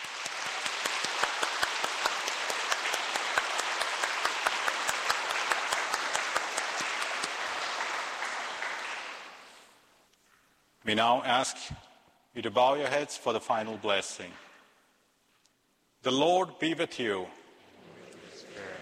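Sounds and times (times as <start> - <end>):
audience applauding: 0.0 - 9.7
speech: 10.9 - 11.8, 12.4 - 14.4, 16.0 - 17.4.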